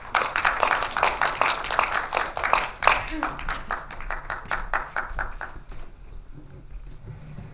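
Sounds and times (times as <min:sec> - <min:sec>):
audience applause welcoming a lecturer: 0:00.0 - 0:05.8.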